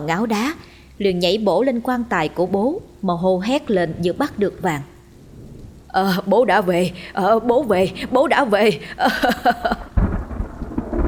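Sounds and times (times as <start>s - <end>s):
speech: 0.0s - 4.9s, 5.9s - 9.9s
heavy rain: 0.0s - 11.0s
thunder: 5.3s - 5.9s, 9.6s - 11.0s
people laughing: 8.8s - 10.0s.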